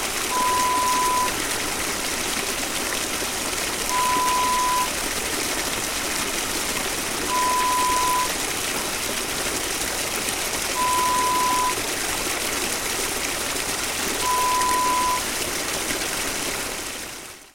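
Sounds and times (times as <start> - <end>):
stream flowing: 0.0 - 17.5.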